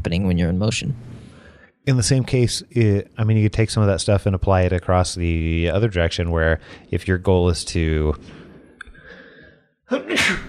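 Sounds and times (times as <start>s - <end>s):
speech: 0.0s - 1.2s, 1.8s - 8.4s, 9.9s - 10.4s
person sneezing: 9.9s - 10.4s.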